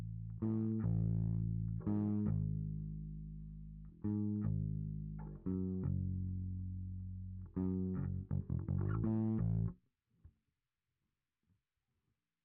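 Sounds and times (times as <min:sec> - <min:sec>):
bass guitar through SansAmp: 0:00.0 - 0:09.8.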